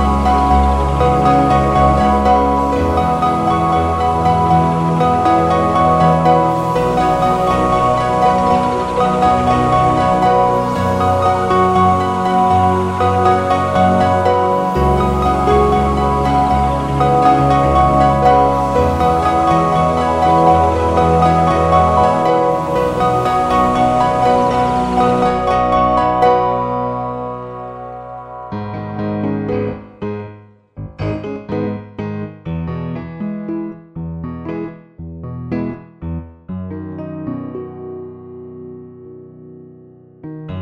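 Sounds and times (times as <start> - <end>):
piano: 0.0 - 40.6.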